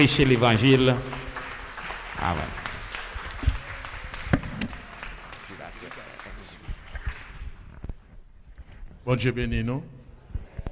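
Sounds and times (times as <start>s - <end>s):
speech: 0.0s - 1.2s, 2.2s - 2.6s, 9.0s - 9.9s
church audience clapping: 0.0s - 7.8s.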